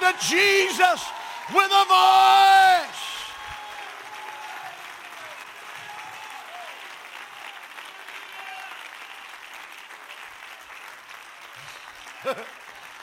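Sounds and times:
audience shouting: 0.0s - 6.8s
audience clapping: 0.0s - 13.0s
speech: 0.1s - 3.1s, 12.2s - 12.6s.

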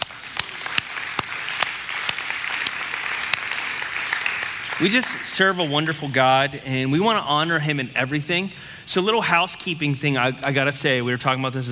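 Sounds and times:
audience clapping: 0.0s - 6.2s
speech: 4.8s - 11.7s.

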